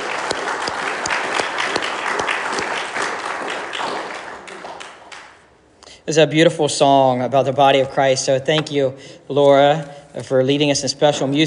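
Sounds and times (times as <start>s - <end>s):
audience clapping: 0.0s - 5.6s
speech: 6.1s - 11.4s.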